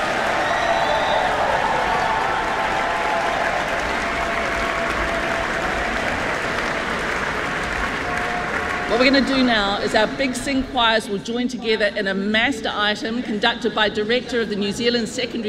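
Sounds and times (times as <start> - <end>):
audience applause: 0.0 - 10.1
speech: 9.0 - 15.4.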